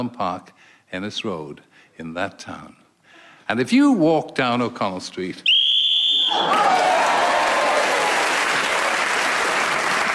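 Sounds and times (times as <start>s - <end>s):
speech: 0.0s - 2.8s, 3.5s - 5.6s
whistle blast signalling end of turn: 5.5s - 6.6s
crowd applause: 6.3s - 10.1s.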